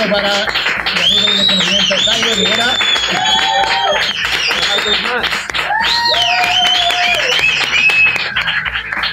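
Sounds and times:
crowd applauding: 0.0s - 9.1s
whooping cheers: 1.0s - 4.8s, 5.6s - 8.4s.

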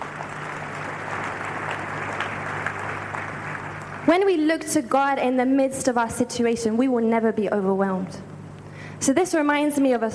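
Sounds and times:
audience clapping: 0.0s - 4.3s
speech: 4.1s - 8.3s, 9.0s - 10.1s.

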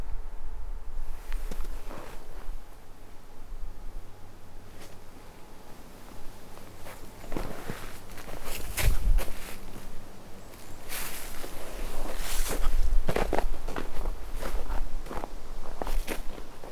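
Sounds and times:
low outdoor hum: 0.0s - 16.7s
footsteps crunching along a walking path: 6.6s - 16.7s.

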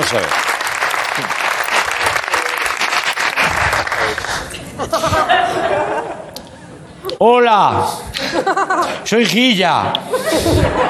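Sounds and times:
audience applause: 0.0s - 4.6s
speech: 0.1s - 0.4s, 1.2s - 1.4s, 4.1s - 6.2s, 7.0s - 10.8s
scattered laughter: 1.0s - 6.8s, 8.2s - 9.1s, 10.0s - 10.8s.

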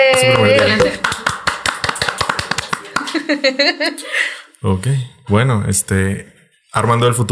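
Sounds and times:
applause: 0.0s - 3.4s
laughter: 0.2s - 1.2s, 2.7s - 4.3s
speech: 3.3s - 7.3s.

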